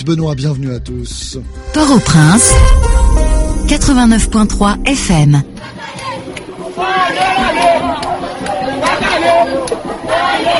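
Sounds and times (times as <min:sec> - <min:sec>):
speech: 0:00.0 - 0:05.8, 0:06.8 - 0:10.5
crowd of thousands marching in protest in Carrefour, Haiti: 0:05.4 - 0:10.5.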